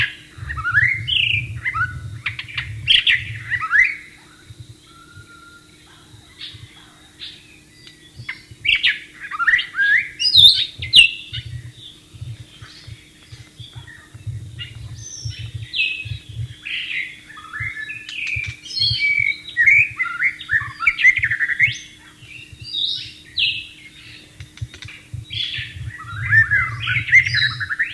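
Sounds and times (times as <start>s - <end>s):
low rumble: 0.0s - 7.1s, 10.6s - 16.7s, 24.2s - 27.9s
White-rumped shama song: 0.0s - 27.9s.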